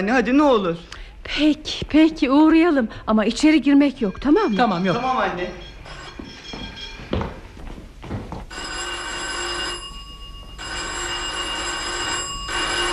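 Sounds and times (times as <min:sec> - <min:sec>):
speech: 0:00.0 - 0:05.7
doorbell being rung repeatedly: 0:04.0 - 0:07.4, 0:08.5 - 0:12.9.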